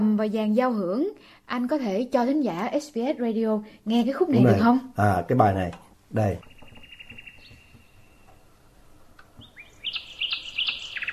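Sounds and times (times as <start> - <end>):
speech: 0.2 - 6.5
nightingale song: 6.1 - 11.1.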